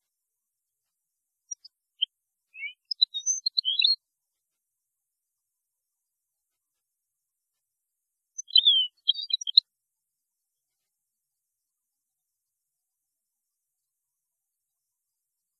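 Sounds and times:
European goldfinch song: 0:02.5 - 0:04.0, 0:08.4 - 0:09.6.

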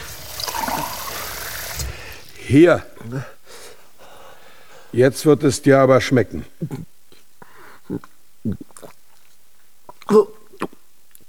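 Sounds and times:
water running from a tap: 0:00.0 - 0:02.4
speech: 0:02.5 - 0:03.4, 0:04.9 - 0:06.9, 0:07.9 - 0:09.0, 0:10.1 - 0:10.8.

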